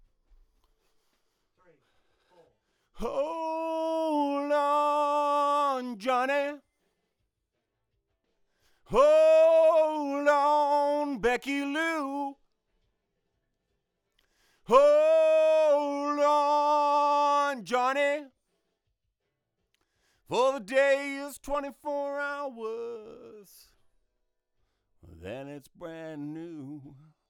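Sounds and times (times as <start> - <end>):
vocals: 1.6 - 6.9, 8.6 - 12.5, 14.4 - 18.4, 20.2 - 23.9, 25.0 - 27.2.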